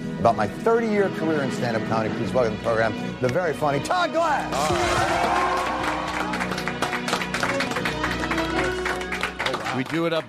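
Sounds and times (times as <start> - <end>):
speech: 0.2 - 5.8, 9.8 - 10.2
studio audience applause and cheering: 4.4 - 10.2.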